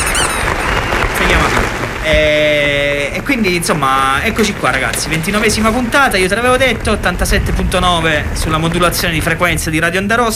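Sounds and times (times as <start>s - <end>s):
applause welcoming a returning guest: 0.0s - 6.3s
speech: 3.2s - 10.3s.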